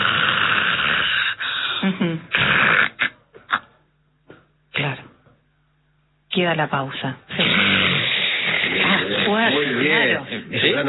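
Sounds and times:
person imitating snoring with their voice: 0:00.0 - 0:03.2, 0:07.3 - 0:10.0
speech: 0:01.9 - 0:02.6, 0:06.4 - 0:07.4, 0:09.3 - 0:10.8.

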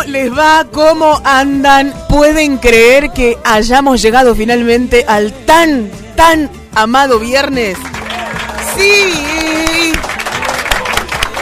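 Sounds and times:
speech: 0:00.0 - 0:07.9, 0:08.8 - 0:09.6
crowd clapping: 0:07.6 - 0:11.3.

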